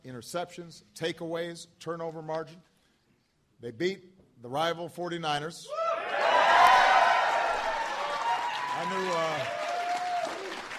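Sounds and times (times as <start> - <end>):
speech: 0.1 - 2.7, 3.6 - 5.9, 8.8 - 9.6
audience clapping: 6.3 - 10.7.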